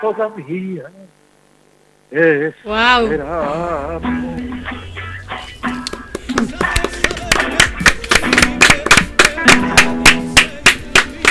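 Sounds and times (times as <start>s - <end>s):
speech: 0.0s - 1.2s, 2.1s - 4.5s
studio audience applause: 5.8s - 11.2s.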